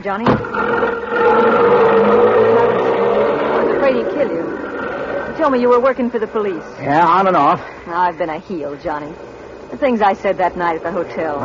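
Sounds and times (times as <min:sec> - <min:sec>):
speech: 0:00.0 - 0:01.8, 0:03.9 - 0:04.6, 0:05.4 - 0:11.4
car engine drone as the car pulls away: 0:00.2 - 0:07.6.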